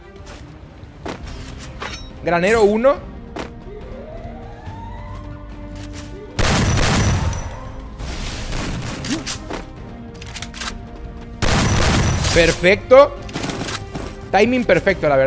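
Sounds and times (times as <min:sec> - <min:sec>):
steady background of video game noise: 0:00.0 - 0:15.2
speech: 0:02.2 - 0:03.1, 0:12.4 - 0:13.2, 0:14.3 - 0:15.2
video game gunfire: 0:06.4 - 0:07.6, 0:11.4 - 0:12.5
video game shotgun shots: 0:06.4 - 0:07.6, 0:11.4 - 0:12.6.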